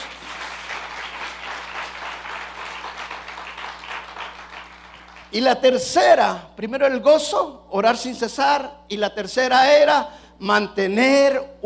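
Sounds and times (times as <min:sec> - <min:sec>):
audience applauding: 0:00.0 - 0:05.4
speech: 0:05.3 - 0:11.6.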